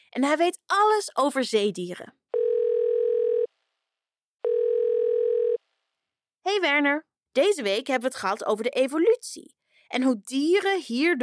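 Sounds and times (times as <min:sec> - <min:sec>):
speech: 0:00.1 - 0:02.2, 0:06.5 - 0:11.2
telephone dial tone: 0:02.4 - 0:03.5, 0:04.4 - 0:05.6.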